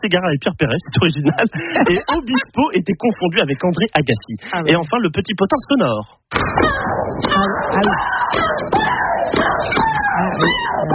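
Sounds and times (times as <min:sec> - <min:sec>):
speech: 0:00.0 - 0:09.5
laughter: 0:00.5 - 0:04.9
tennis player's loud shriek while hitting: 0:06.5 - 0:10.9.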